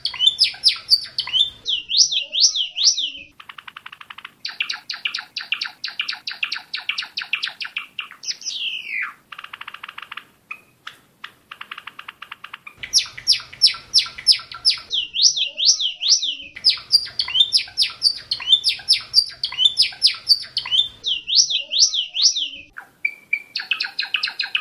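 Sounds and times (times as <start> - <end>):
Gelatik Batu bird singing vigorously: 0.0 - 10.9, 11.6 - 24.5.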